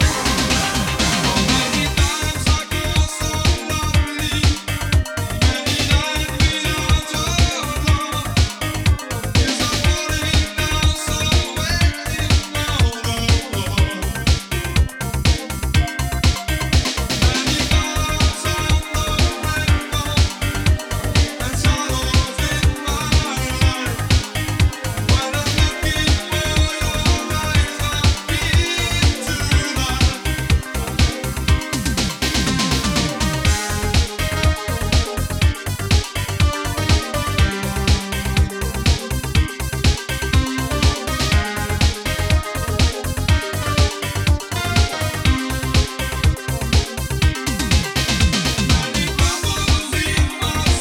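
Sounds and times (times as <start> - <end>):
vocal remix: 0.0 - 50.7.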